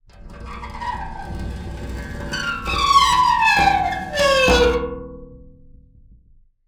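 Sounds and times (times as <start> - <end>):
rubbing a pane of glass: 0.4 - 4.8.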